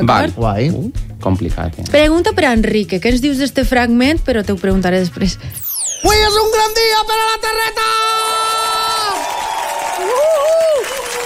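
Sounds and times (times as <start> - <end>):
speech: 0.0 - 8.4
regional TV show studio audience cheering and shouting: 7.1 - 11.2
person whooping: 8.0 - 11.2.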